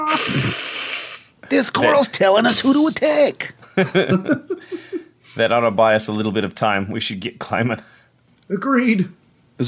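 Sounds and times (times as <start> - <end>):
muffled hissing from behind a wall: 0.1 - 3.4
speech: 1.5 - 9.6.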